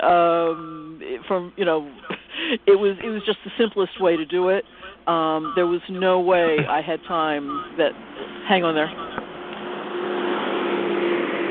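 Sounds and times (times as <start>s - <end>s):
tractor with big hay bales passing: 0.0s - 11.4s
speech: 1.3s - 9.1s.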